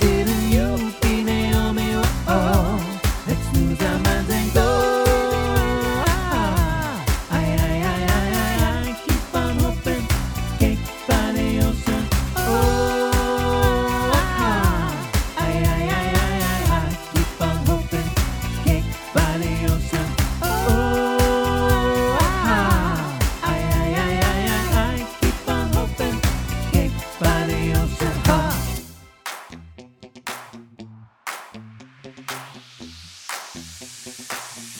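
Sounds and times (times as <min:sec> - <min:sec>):
vocal mix: 0:00.0 - 0:28.9, 0:34.6 - 0:34.7.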